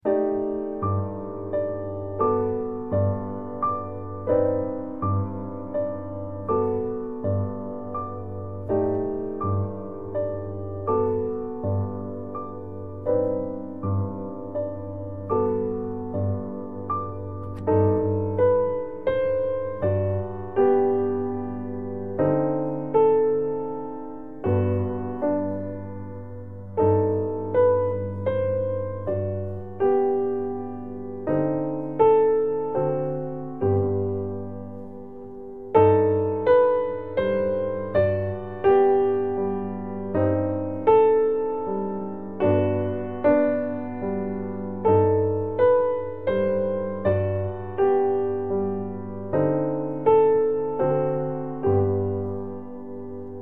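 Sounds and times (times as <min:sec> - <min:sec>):
easy piano: 0:00.0 - 0:53.3.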